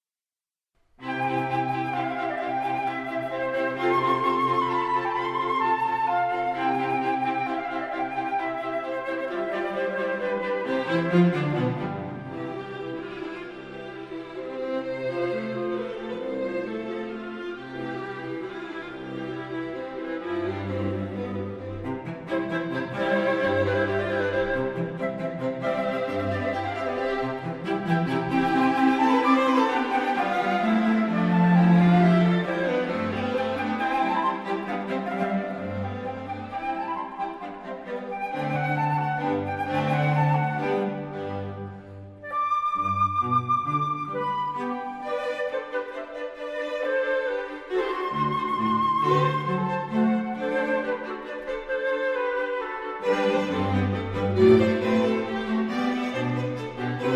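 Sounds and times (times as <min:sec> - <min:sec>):
flute quartet playing a classical piece: 0:01.0 - 0:57.1.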